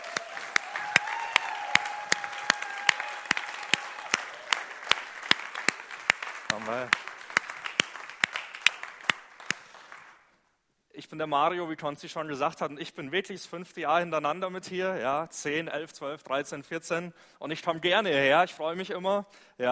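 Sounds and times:
audience applause: 0.0 - 10.2
speech: 6.6 - 7.0, 11.0 - 19.7.

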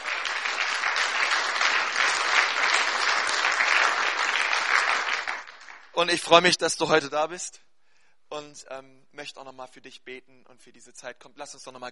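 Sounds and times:
audience applause: 0.0 - 5.9
speech: 6.0 - 7.6, 8.3 - 11.8.

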